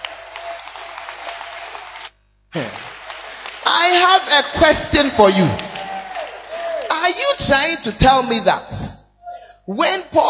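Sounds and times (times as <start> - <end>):
audience clapping: 0.0 - 7.3
speech: 2.5 - 2.9, 3.9 - 5.6, 7.0 - 8.8, 9.7 - 10.2.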